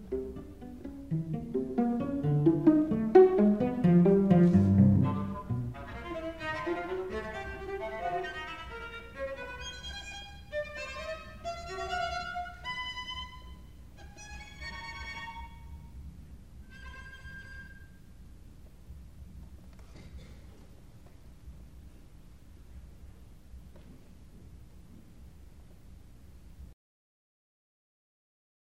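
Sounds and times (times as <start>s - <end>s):
string chamber music: 0.0s - 16.0s, 16.6s - 17.9s.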